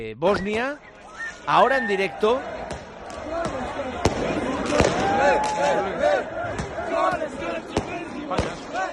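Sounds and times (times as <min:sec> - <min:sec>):
speech: 0:00.0 - 0:00.9, 0:01.5 - 0:02.7, 0:03.3 - 0:08.9
crowd in Sarajevo celebrating Bosnia qualifying for the World Cup: 0:00.4 - 0:08.9
firecracker bangs: 0:02.7 - 0:05.6.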